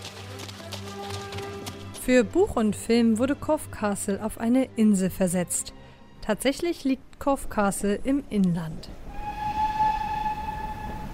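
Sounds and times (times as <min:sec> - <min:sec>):
speech: 0:02.1 - 0:09.0
Swanage Railway steam locomotive whistle at a historic station beside Corfe Castle: 0:09.1 - 0:11.1.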